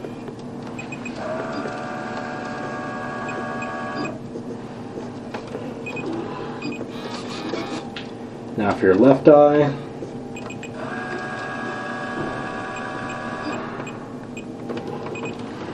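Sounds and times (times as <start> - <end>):
autorefractor machine whirring: 0.0 - 4.2, 5.5 - 8.0, 10.3 - 15.7
constant room hum: 0.0 - 15.7
speech: 8.6 - 9.8.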